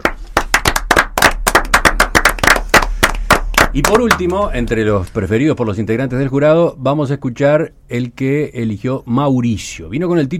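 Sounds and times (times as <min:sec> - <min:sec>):
audience applause: 0:00.0 - 0:04.3
speech: 0:03.7 - 0:10.3.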